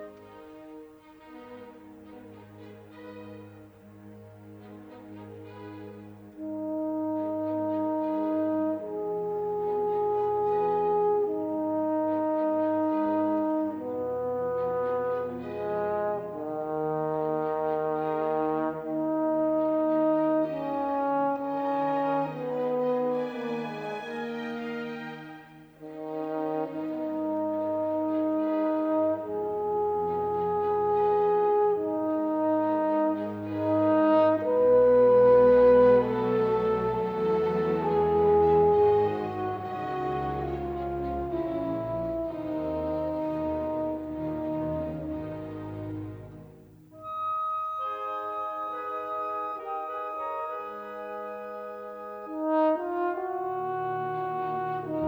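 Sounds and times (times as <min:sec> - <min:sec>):
horn with orchestra in a concerto: 0:00.0 - 0:55.0.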